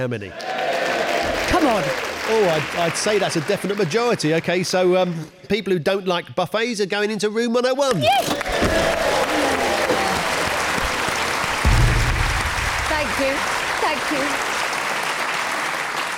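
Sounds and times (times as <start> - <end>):
speech: 0.0 - 0.6, 1.6 - 9.1, 13.2 - 14.5
studio audience applauding: 0.4 - 5.2, 8.1 - 16.1.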